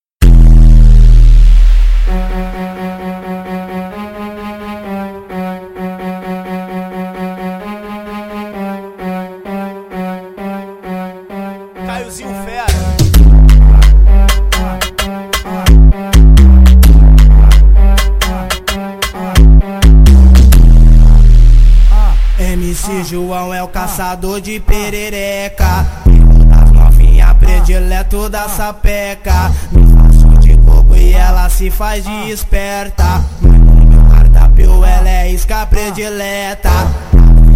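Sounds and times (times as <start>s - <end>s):
deep bass: 0.2s - 6.6s, 12.6s - 23.0s, 25.6s - 28.4s, 29.3s - 32.2s, 33.0s - 35.7s, 36.7s - 37.5s.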